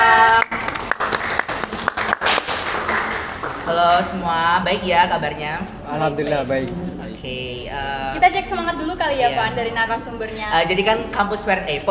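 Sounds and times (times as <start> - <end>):
applause from people in the room: 0.0 - 4.1
speech: 4.0 - 11.8.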